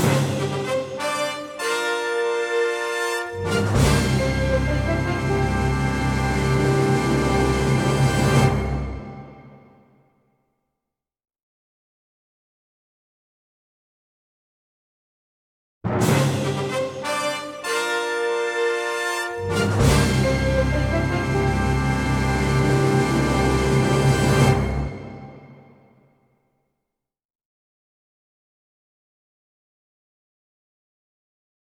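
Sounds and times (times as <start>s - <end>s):
instrumental fanfare: 0.2s - 9.5s, 16.1s - 25.6s.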